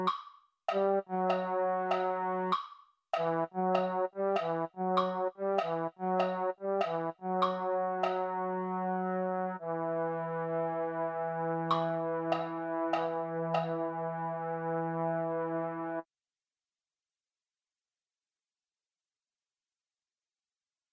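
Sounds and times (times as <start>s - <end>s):
MIDI baritone sound: 0.0s - 10.6s, 11.4s - 15.8s.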